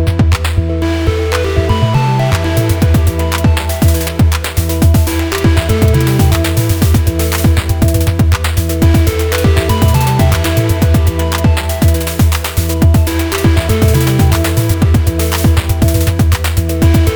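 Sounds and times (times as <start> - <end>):
noisy industrial acid-rave music on synthesizers: 0.0 - 17.1.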